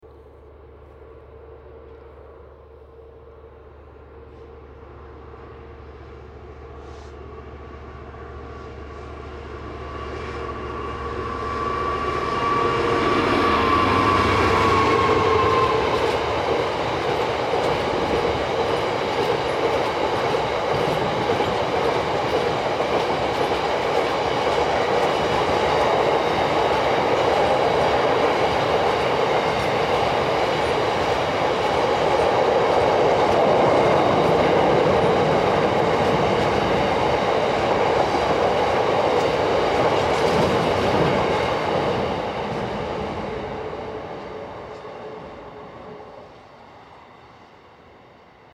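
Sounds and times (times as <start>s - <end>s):
train passing: 0.0s - 48.5s.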